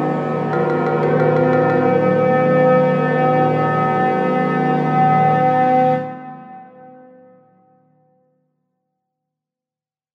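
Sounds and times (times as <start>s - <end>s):
chamber music in 26 equal divisions of the octave: 0.0s - 5.3s.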